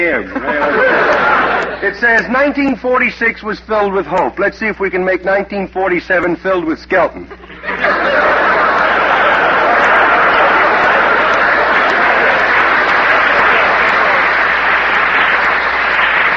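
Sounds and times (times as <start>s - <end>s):
speech: 0.0s - 1.0s, 1.8s - 8.4s
laughter: 0.0s - 2.6s, 7.2s - 16.3s
audience applause: 7.7s - 16.3s.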